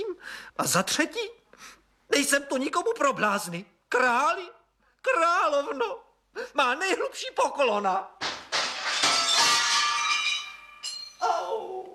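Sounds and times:
speech: 0.3s - 8.2s
window glass shattering: 8.2s - 11.2s.

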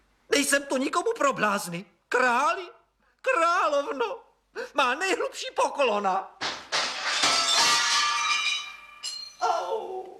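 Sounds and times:
speech: 0.4s - 6.4s
glass pieces clattering as they fall: 6.4s - 9.4s
window glass shattering: 6.4s - 9.4s.

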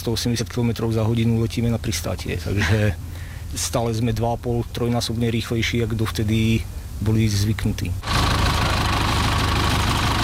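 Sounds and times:
speech: 0.0s - 8.1s
old Zetor tractor engine chugging while towing an aircraft: 8.0s - 10.2s.

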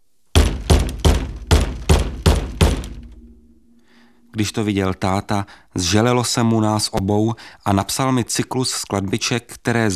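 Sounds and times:
plastic tub hitting a head: 0.4s - 3.0s
speech: 4.4s - 9.9s.

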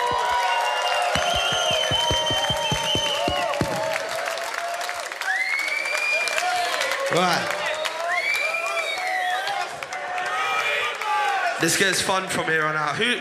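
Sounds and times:
concert audience clapping: 0.0s - 11.2s
concert audience cheering: 0.0s - 11.6s
whistles: 0.1s - 4.0s, 5.2s - 6.6s, 7.7s - 9.6s
speech: 7.1s - 7.6s, 11.6s - 13.2s.

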